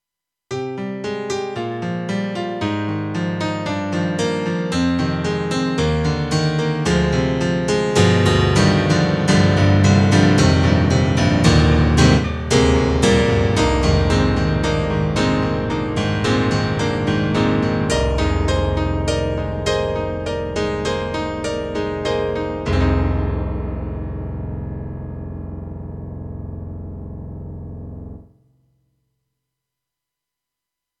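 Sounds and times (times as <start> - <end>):
grand piano: 0.5 - 28.3.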